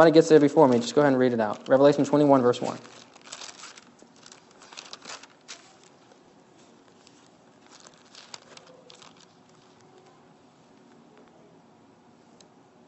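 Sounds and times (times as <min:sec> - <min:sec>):
speech: 0:00.0 - 0:03.0
Bible pages being flipped: 0:00.7 - 0:06.2, 0:06.9 - 0:10.2.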